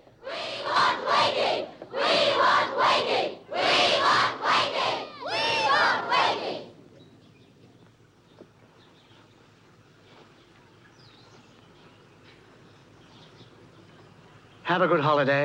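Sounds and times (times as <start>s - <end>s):
large crowd of pupils chanting outside in unison: 0.0s - 6.8s
speech: 14.7s - 15.4s.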